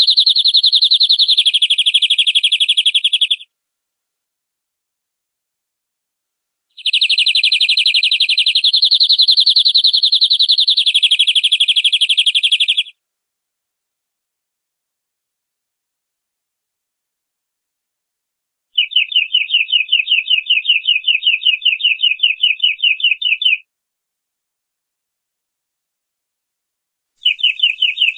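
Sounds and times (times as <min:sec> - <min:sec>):
domestic canary giving long rolling song: 0:00.0 - 0:03.5, 0:06.7 - 0:13.0, 0:18.7 - 0:23.7, 0:27.2 - 0:28.1.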